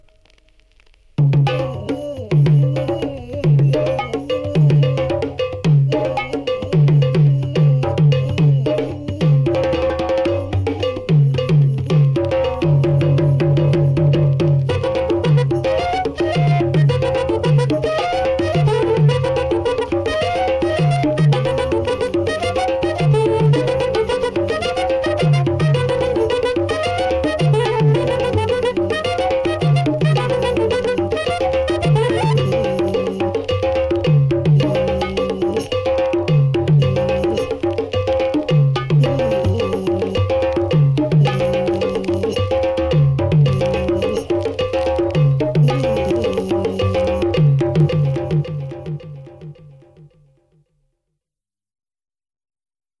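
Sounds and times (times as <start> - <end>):
Candombe percussion: 0.0 - 50.6.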